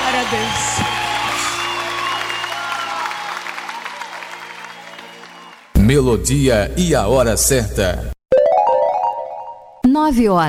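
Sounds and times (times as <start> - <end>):
audience applauding: 0.0 - 5.8
speech: 0.2 - 1.0, 5.9 - 8.2, 10.0 - 10.4.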